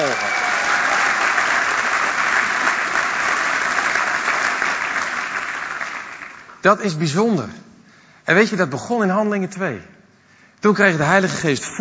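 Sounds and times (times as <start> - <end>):
audience applause: 0.0 - 6.6
speech: 6.6 - 7.7, 8.3 - 10.0, 10.6 - 11.7.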